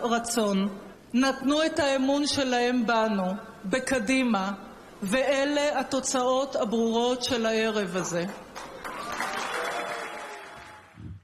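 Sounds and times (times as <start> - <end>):
speech: 0.0 - 8.7
large crowd applause: 8.6 - 11.0.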